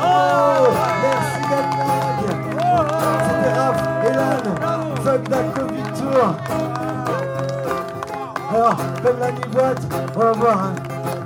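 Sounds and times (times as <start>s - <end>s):
audience applause and cheering: 0.0s - 11.2s
speech: 8.7s - 10.9s.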